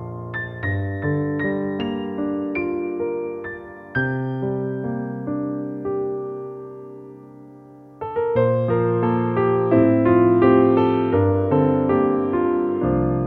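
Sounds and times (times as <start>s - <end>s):
warm piano: 0.0s - 13.2s.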